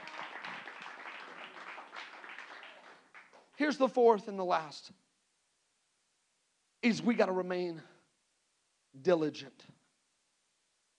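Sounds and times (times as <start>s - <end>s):
audience applauding: 0.0s - 3.6s
speech: 3.6s - 5.0s, 6.8s - 7.9s, 9.0s - 9.8s.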